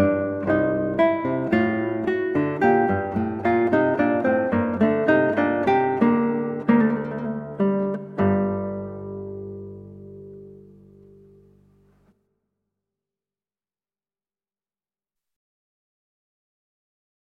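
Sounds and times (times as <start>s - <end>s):
sonatina in G minor on guitar: 0.0s - 12.2s.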